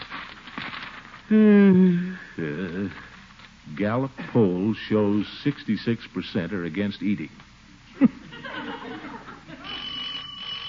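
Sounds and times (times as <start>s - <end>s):
speech: 1.3s - 8.2s
laughter: 8.0s - 9.9s
doorbell ringing: 9.6s - 10.6s.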